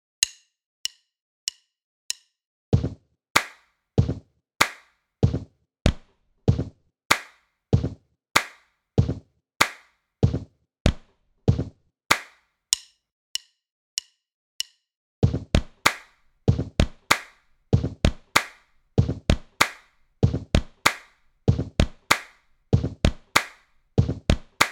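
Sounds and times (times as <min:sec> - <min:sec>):
body percussion: 0:02.8 - 0:12.4, 0:15.2 - 0:24.7.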